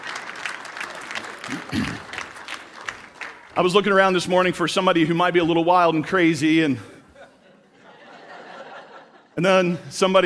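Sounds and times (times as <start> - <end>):
audience applause welcoming volunteers onto a stage: 0.0 - 4.3
speech: 1.7 - 2.1, 3.6 - 6.9, 9.4 - 10.2
laughter: 6.8 - 9.9.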